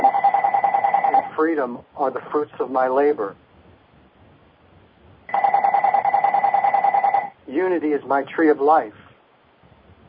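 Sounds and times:
electronic telephone ringing: 0.0 - 1.4, 5.3 - 7.4
speech: 1.4 - 3.4, 7.5 - 9.0.

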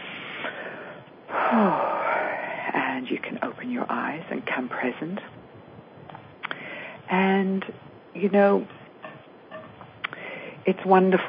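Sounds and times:
deep breath in and out during a guided meditation: 0.0 - 2.7, 6.4 - 7.1, 10.1 - 10.6
speech: 3.2 - 5.5, 7.1 - 8.8, 10.6 - 11.2.

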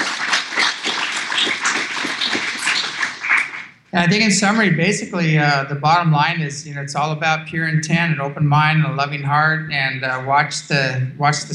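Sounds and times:
talk show audience applauding: 0.0 - 3.8
speech: 3.9 - 11.5.

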